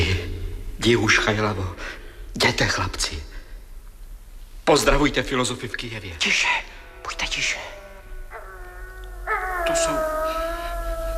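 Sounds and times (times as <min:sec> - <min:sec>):
speech: 0:00.8 - 0:03.3, 0:04.7 - 0:07.7, 0:09.7 - 0:10.1
wolves howling: 0:06.7 - 0:11.1.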